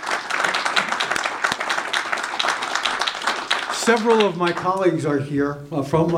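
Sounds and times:
audience applause: 0:00.0 - 0:04.9
speech: 0:03.9 - 0:06.1.

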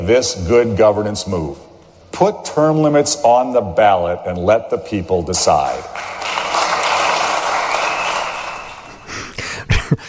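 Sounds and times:
speech: 0:00.1 - 0:06.2
applause in legislative chamber: 0:05.9 - 0:09.1.

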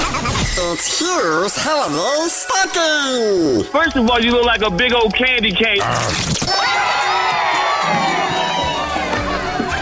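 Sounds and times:
speech: 0:00.6 - 0:06.8
crowd cheering in radio contest sounder: 0:06.4 - 0:09.8
excited children shouting: 0:06.5 - 0:09.8.

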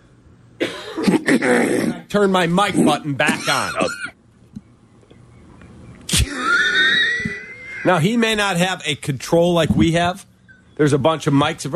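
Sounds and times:
cough: 0:00.6 - 0:02.1, 0:02.7 - 0:04.2, 0:06.1 - 0:07.4
speech: 0:01.3 - 0:04.1, 0:07.9 - 0:11.7.

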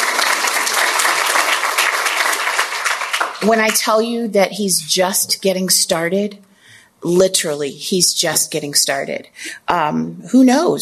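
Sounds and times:
audience applause: 0:00.0 - 0:03.7
speech: 0:03.4 - 0:10.8.

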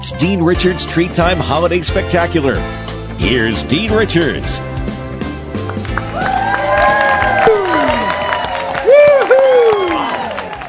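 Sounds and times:
speech: 0:00.1 - 0:04.7
audience clapping: 0:05.5 - 0:10.6
crowd whooping and cheering: 0:05.9 - 0:10.6.

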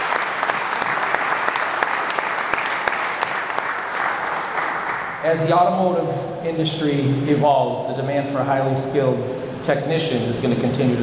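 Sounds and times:
audience applause: 0:00.0 - 0:05.2
speech: 0:05.2 - 0:11.0.

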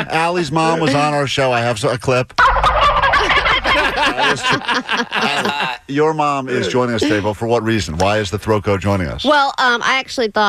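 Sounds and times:
laughter: 0:00.0 - 0:01.2, 0:02.8 - 0:07.4
speech: 0:00.1 - 0:02.4, 0:04.0 - 0:10.4
turkey gobbling: 0:02.4 - 0:04.0.

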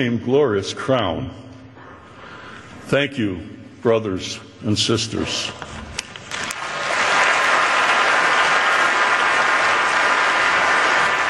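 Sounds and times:
speech: 0:00.0 - 0:01.5, 0:02.9 - 0:05.8
crowd applauding at a police officer's funeral as the injured father walks off stage: 0:06.3 - 0:11.2.

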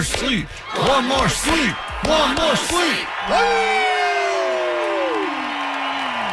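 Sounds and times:
speech: 0:00.0 - 0:03.9
small crowd cheering and whooping: 0:00.6 - 0:06.3.

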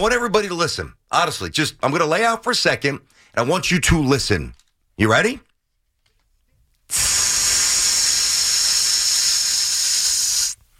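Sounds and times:
speech: 0:00.0 - 0:05.5, 0:06.9 - 0:07.2
air rushing out of a balloon: 0:06.9 - 0:10.6.

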